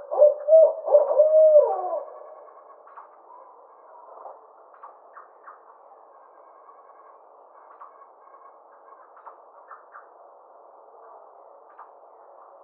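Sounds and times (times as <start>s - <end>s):
Barred owl giving low hoots: 0.0s - 2.7s.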